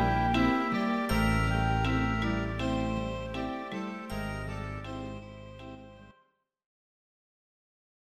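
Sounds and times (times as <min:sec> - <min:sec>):
interlude music: 0:00.0 - 0:06.3.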